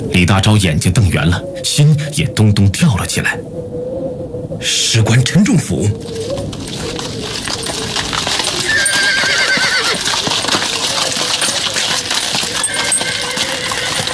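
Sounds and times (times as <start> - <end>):
speech: 0.1 - 3.6, 4.6 - 6.6
horse-drawn carriage hooves clip-clopping: 5.9 - 14.1
metallic jingles: 5.9 - 14.1
horse whinny: 6.7 - 14.1.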